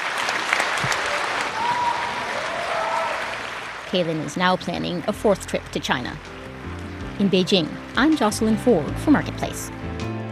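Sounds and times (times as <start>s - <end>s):
large audience applauding for an encore: 0.0s - 7.2s
speech: 3.9s - 6.3s, 7.2s - 9.9s.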